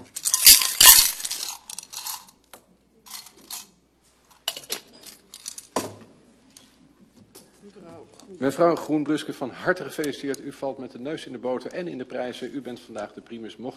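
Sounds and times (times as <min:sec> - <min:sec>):
lots rattling and clinking in the Dutch parliament roll-call draw: 0:00.0 - 0:02.3, 0:04.4 - 0:05.8
speech: 0:08.0 - 0:13.7.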